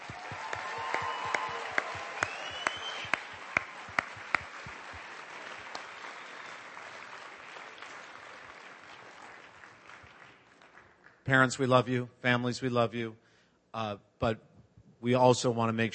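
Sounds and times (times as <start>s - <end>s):
audience round of applause: 0.0s - 11.2s
speech: 11.3s - 13.2s, 13.8s - 15.9s.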